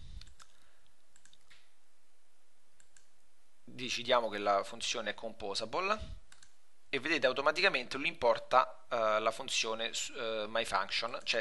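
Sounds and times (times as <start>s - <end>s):
computer mouse right-clicks: 0.2s - 1.7s, 2.8s - 3.1s, 6.3s - 6.6s
speech: 3.8s - 6.2s, 6.9s - 11.3s.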